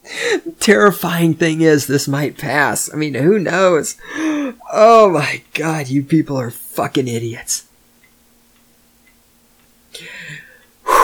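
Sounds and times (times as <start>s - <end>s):
person speaking loudly: 0.3s - 7.6s
speech: 0.4s - 7.7s
deep wheezy gasping breath: 4.0s - 4.6s, 10.0s - 11.0s.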